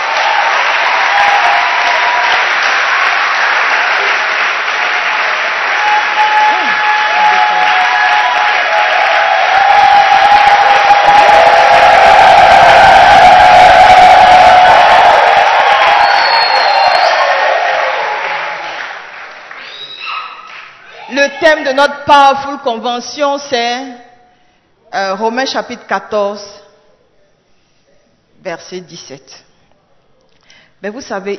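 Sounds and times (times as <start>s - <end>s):
church convention congregation applauding: 0.0s - 21.8s
whoops and shouts: 5.7s - 18.2s, 19.6s - 21.7s
speech: 21.5s - 24.0s, 24.9s - 26.5s, 28.4s - 29.5s, 30.8s - 31.3s.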